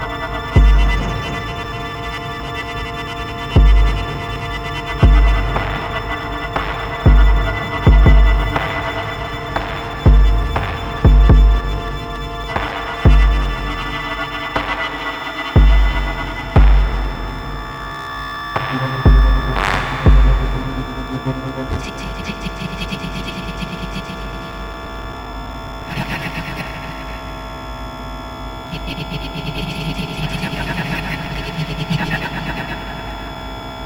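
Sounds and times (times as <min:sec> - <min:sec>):
experimental music made from bass drum grains: 0:00.4 - 0:01.7, 0:03.4 - 0:22.3.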